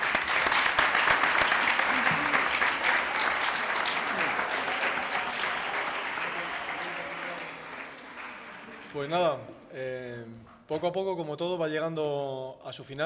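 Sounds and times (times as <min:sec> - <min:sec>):
strong applause: 0:00.0 - 0:09.1
speech: 0:09.0 - 0:13.0.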